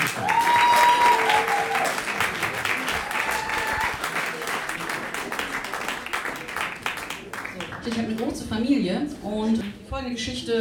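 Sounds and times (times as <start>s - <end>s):
audience applause: 0.0s - 8.3s
speech: 7.9s - 10.5s.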